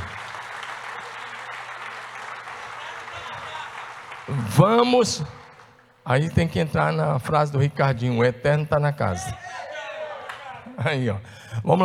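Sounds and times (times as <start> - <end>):
audience applause: 0.0 - 5.9
speech: 4.3 - 5.4, 6.1 - 9.6, 10.8 - 11.8.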